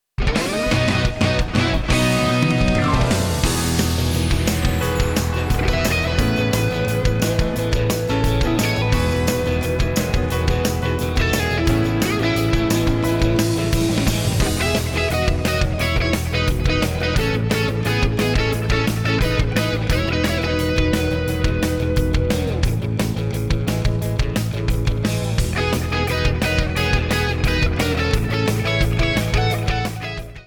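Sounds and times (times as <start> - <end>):
rock arrangement: 0.2 - 30.4.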